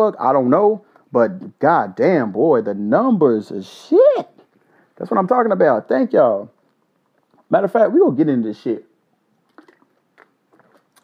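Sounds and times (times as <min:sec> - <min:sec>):
speech: 0:00.0 - 0:04.3, 0:05.0 - 0:06.6, 0:07.5 - 0:08.9
mouth clicks: 0:06.6 - 0:07.5, 0:09.1 - 0:11.0
person drinking water with gulps: 0:09.4 - 0:11.0.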